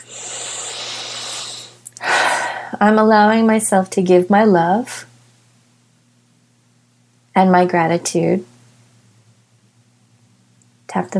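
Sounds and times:
big deep breath during a finger-tapping relaxation exercise: 0.0 - 2.8
speech: 2.8 - 5.1, 7.4 - 8.5, 10.9 - 11.1.

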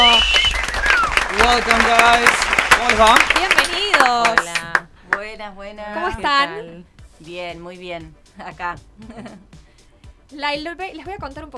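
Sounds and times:
audience applause for live band: 0.0 - 5.2
speech: 1.5 - 3.4, 5.4 - 9.5, 10.3 - 11.5.

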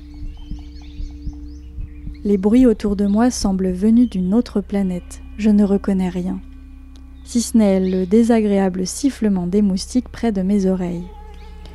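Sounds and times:
strong heartbeat: 0.0 - 4.3
speech: 2.2 - 6.5, 7.3 - 11.2.

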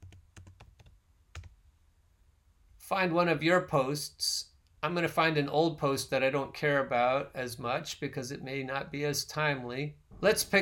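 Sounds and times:
typing a name on a computer keyboard: 0.0 - 1.6
speech: 2.9 - 10.5.

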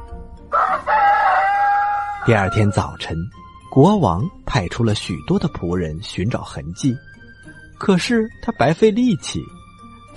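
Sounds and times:
rooster crowing: 0.5 - 3.0
speech: 2.3 - 7.1, 7.8 - 9.6.

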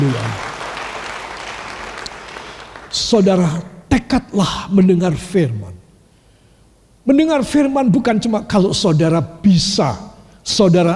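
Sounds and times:
crowd applause: 0.0 - 3.0
speech: 2.9 - 5.8, 7.1 - 10.9.

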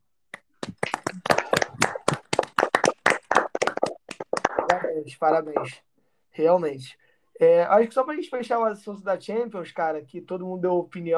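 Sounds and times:
hand clapping: 0.3 - 5.8
speech: 5.0 - 11.1.

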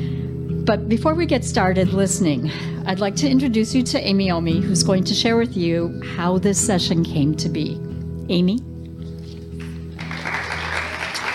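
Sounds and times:
speech: 0.7 - 8.7
round of applause: 9.6 - 11.3.

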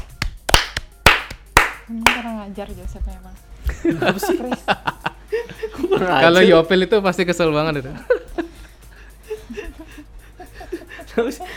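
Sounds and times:
scattered clapping: 0.0 - 2.3
speech: 1.9 - 8.1, 11.2 - 11.5
laughter: 3.7 - 6.4, 9.2 - 11.5.

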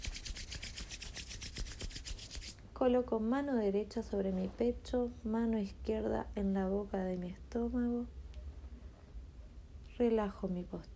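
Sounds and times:
vigorous rubbing: 0.0 - 2.6
speech: 2.8 - 8.2, 10.0 - 10.9.

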